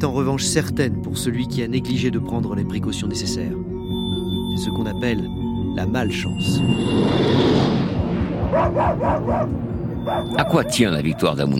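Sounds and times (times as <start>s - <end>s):
speech: 0.0s - 3.8s, 4.6s - 11.5s
busy steady background of lower barking: 8.4s - 11.5s
sled dogs yapping sharply: 8.4s - 11.5s.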